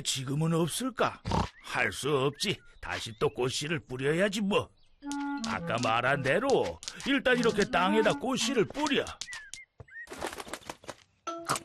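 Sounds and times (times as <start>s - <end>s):
speech: 0.0s - 9.3s
sparrow chirping: 0.3s - 10.1s
wings fluttering and rustling: 5.0s - 11.2s.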